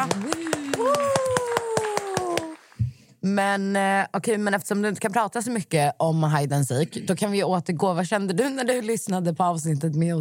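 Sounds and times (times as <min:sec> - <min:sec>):
hosts clapping hands in applause: 0:00.0 - 0:02.9
speech: 0:03.2 - 0:10.1.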